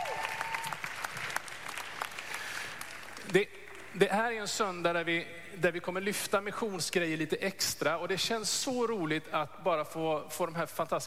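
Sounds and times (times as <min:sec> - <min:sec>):
applause: 0:00.0 - 0:04.0
speech: 0:03.3 - 0:11.0.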